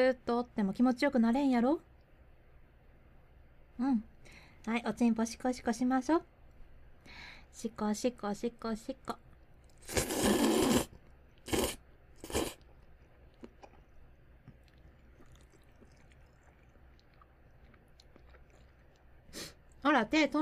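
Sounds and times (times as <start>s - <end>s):
speech: 0.0s - 1.9s, 3.8s - 6.3s, 7.0s - 9.2s, 9.8s - 10.4s, 19.9s - 20.3s
someone slurping and chewing curry somen noodles: 9.6s - 19.8s
quiet mouth sounds: 9.7s - 19.8s.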